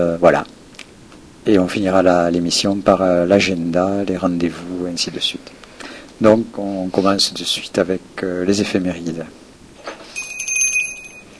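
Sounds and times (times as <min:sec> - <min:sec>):
speech: 0:00.0 - 0:00.6, 0:01.4 - 0:09.4
small bell ringing: 0:10.0 - 0:11.3.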